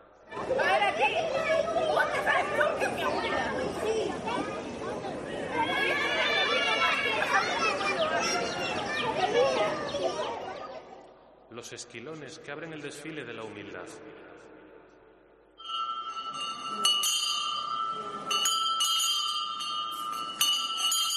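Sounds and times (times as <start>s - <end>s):
crowd chatter in a Holy Week procession: 0.0s - 15.6s, 16.2s - 21.1s
children's cheerful voices in a Holy Week procession: 0.3s - 11.2s
speech: 11.6s - 14.5s.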